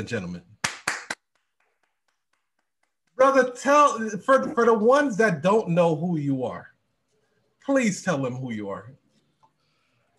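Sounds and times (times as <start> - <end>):
speech: 0.0 - 0.5, 3.2 - 6.7, 7.7 - 9.0
round of applause: 0.6 - 3.6.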